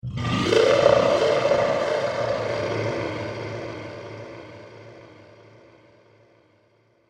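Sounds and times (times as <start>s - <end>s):
demon screaming: 0.0s - 5.0s.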